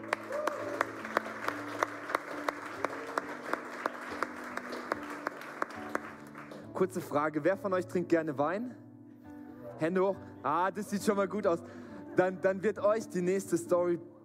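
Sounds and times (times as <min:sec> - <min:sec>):
audience applause: 0:00.0 - 0:06.7
speech: 0:06.8 - 0:08.8, 0:09.8 - 0:14.1.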